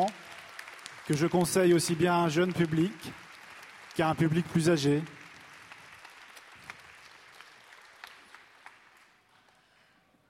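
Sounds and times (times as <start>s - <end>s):
speech: 0.0s - 0.2s, 1.1s - 3.2s, 4.0s - 5.2s
audience applauding: 0.0s - 9.8s.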